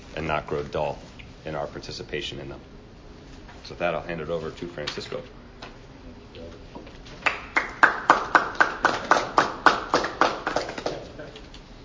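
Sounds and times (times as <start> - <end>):
speech: 0.2 - 2.8, 3.6 - 5.4
audience clapping: 7.2 - 11.5.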